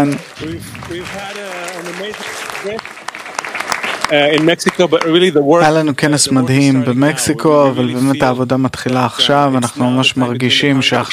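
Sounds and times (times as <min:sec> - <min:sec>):
speech: 0:00.0 - 0:03.0, 0:04.1 - 0:11.1
audience applause: 0:00.0 - 0:05.4.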